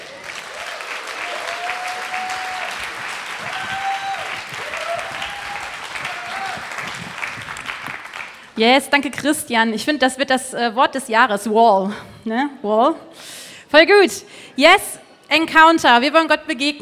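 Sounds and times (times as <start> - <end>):
audience applause: 0.0 - 8.6
speech: 8.6 - 16.8.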